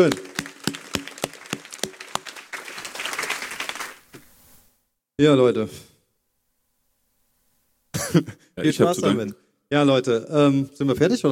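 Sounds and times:
speech: 0.0 - 0.3, 5.2 - 5.9, 8.1 - 11.3
person clapping slowly: 0.0 - 4.0
applause from several hands: 0.0 - 4.2.

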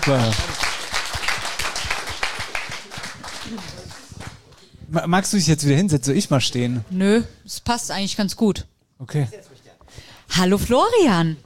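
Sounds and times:
speech: 0.0 - 0.5, 3.5 - 3.8, 4.9 - 9.5, 10.4 - 11.4
audience applause: 0.0 - 4.7.

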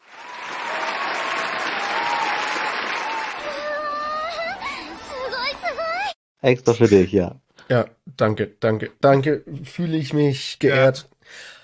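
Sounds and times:
applause: 0.0 - 4.9
speech: 6.4 - 11.6.

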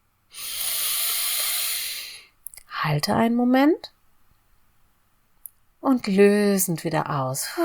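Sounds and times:
breathing in through the nose during a guided breathing exercise: 0.3 - 2.3
speech: 2.8 - 4.0, 5.8 - 7.6.

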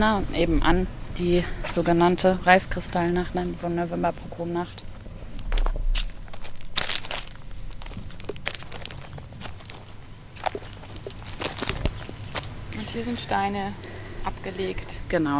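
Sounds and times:
speech: 0.0 - 4.9, 13.0 - 15.3
footsteps crunching over stones: 4.8 - 14.4.

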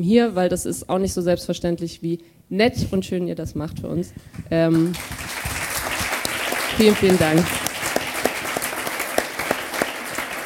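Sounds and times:
speech: 0.0 - 5.4, 6.8 - 7.7
live audience applause: 4.8 - 10.4.

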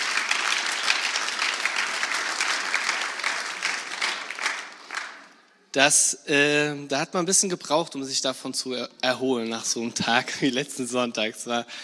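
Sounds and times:
audience clapping for baptized people: 0.0 - 5.4
speech: 5.8 - 11.8.

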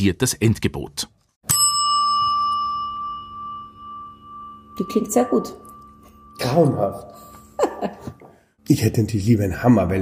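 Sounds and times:
speech: 0.0 - 1.1, 4.8 - 5.6, 6.4 - 10.0
reception desk bell ring: 1.5 - 8.2.

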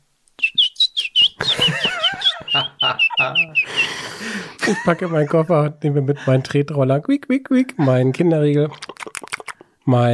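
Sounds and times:
voice imitating canary chirping: 0.4 - 3.9, 8.7 - 9.6
laughter: 1.4 - 6.6
speech: 2.6 - 9.3, 9.9 - 10.1
breathy hiss: 3.6 - 4.6.

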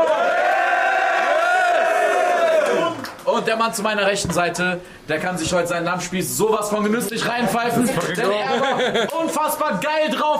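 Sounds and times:
crowd cheering: 0.0 - 3.2
speech: 3.4 - 10.3
laughter: 7.3 - 9.6.

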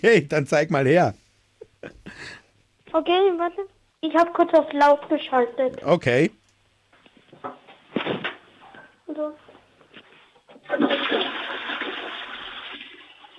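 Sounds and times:
speech: 0.0 - 1.2, 1.8 - 6.4, 7.3 - 8.3, 9.1 - 9.4, 10.7 - 11.4
toilet flushing: 10.6 - 13.3.

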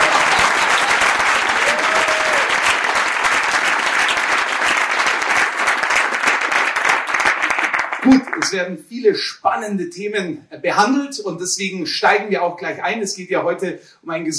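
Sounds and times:
crowd applauding: 0.0 - 8.6
speech: 8.1 - 14.3.

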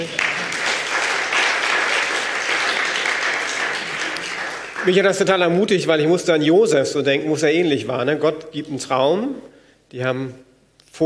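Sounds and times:
audience applause: 0.0 - 5.4
speech: 4.8 - 11.0.

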